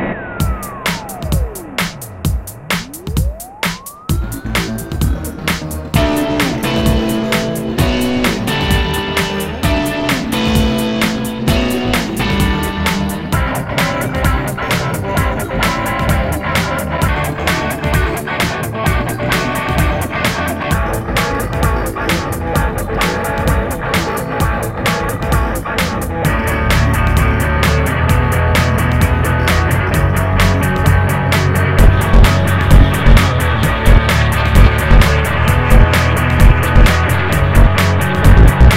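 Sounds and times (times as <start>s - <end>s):
techno rock music: 0.1s - 38.7s.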